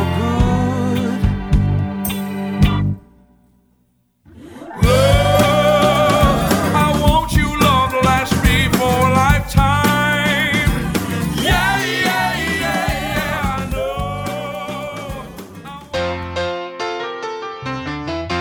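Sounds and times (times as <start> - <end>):
pop rock music: 0.0 - 3.0, 4.8 - 16.4.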